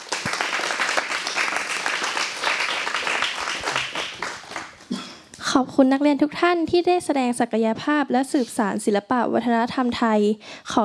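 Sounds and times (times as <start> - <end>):
audience applause: 0.0 - 4.8
speech: 5.6 - 10.8.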